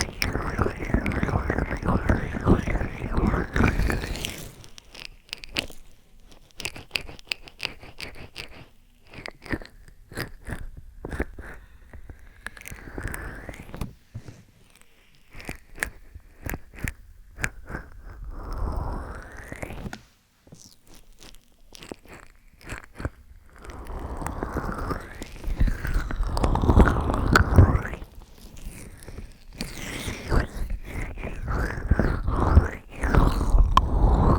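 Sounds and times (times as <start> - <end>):
ear cleaning with a fluffy brush: 0.0 - 11.6, 14.7 - 34.3.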